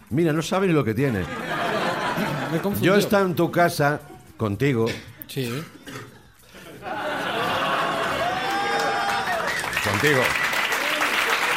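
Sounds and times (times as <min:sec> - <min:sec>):
speech: 0:00.1 - 0:01.5, 0:02.2 - 0:06.1, 0:10.0 - 0:10.4
laughter: 0:01.0 - 0:03.5, 0:06.2 - 0:09.6
audience applause: 0:07.0 - 0:11.5.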